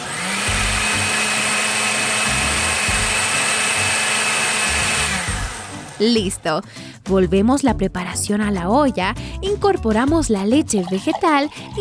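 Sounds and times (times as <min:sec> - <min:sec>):
food processor puréeing cooked potato, thyme and hot vegetable broth: 0:00.0 - 0:05.8
speech: 0:06.0 - 0:11.7.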